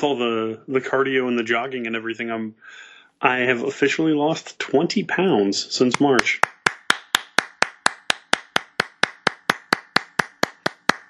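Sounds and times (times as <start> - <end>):
speech: 0.0 - 6.6
person clapping hands: 5.9 - 11.0.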